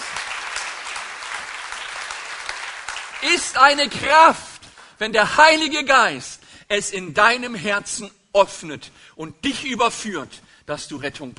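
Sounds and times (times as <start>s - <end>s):
applause: 0.0s - 5.0s
speech: 3.2s - 11.3s.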